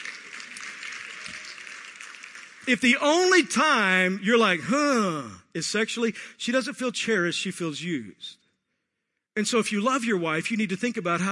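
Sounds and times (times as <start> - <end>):
audience clapping: 0.0 - 3.4
speech: 2.7 - 8.4, 9.4 - 11.3.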